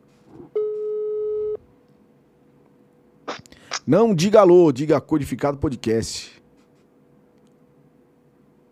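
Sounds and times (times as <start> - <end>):
telephone busy tone on an outgoing call: 0.6 - 1.6
speech: 3.9 - 6.4.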